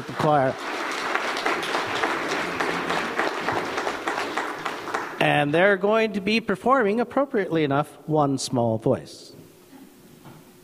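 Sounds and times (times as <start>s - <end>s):
audience applause for performers: 0.0s - 5.4s
speech: 0.2s - 0.7s, 5.2s - 9.3s.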